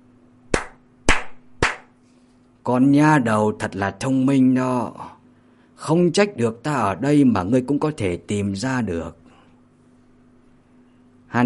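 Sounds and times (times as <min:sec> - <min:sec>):
faint steady hum: 0:00.0 - 0:11.4
person clapping hands: 0:00.5 - 0:02.0
speech: 0:02.6 - 0:05.1, 0:05.8 - 0:09.2.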